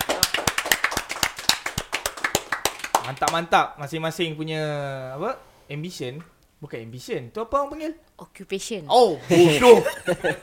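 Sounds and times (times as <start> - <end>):
audience hand clapping for a band member: 0.0 - 3.5
speech: 3.1 - 10.4
laughter: 9.2 - 10.4.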